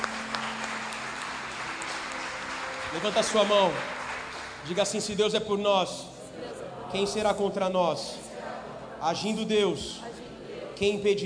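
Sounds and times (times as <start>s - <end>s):
congregation clapping during a church service: 0.0s - 5.6s
speech: 2.9s - 4.0s, 4.6s - 8.2s, 9.0s - 10.1s, 10.8s - 11.2s.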